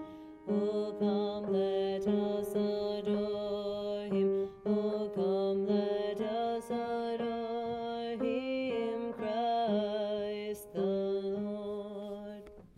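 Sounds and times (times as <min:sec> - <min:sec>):
baritone singing: 0:00.5 - 0:12.6.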